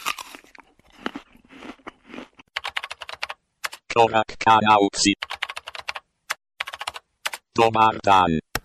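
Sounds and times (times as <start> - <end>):
biting into and chewing a crunchy apple: 0.0 - 2.6
speech: 4.0 - 5.2, 7.6 - 8.5.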